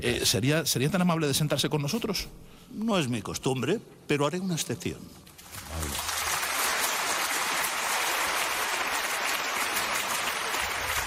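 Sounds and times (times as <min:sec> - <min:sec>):
speech: 0:00.0 - 0:05.3
audience applause: 0:05.5 - 0:11.0.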